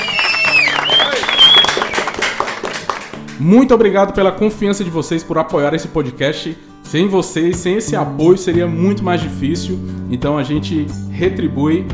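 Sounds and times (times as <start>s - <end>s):
whistling: 0.0s - 2.4s
hands clapping: 0.0s - 3.8s
speech: 3.4s - 11.9s.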